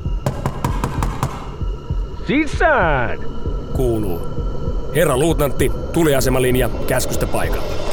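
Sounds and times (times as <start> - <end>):
knocking on a door: 0.1 - 2.1
speech: 2.3 - 7.9.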